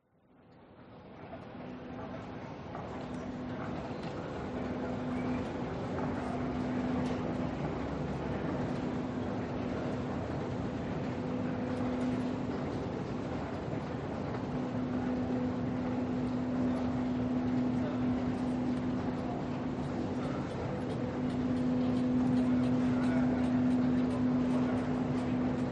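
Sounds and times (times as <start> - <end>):
quiet voices in Broadway subway station in NYC: 1.4 - 25.7.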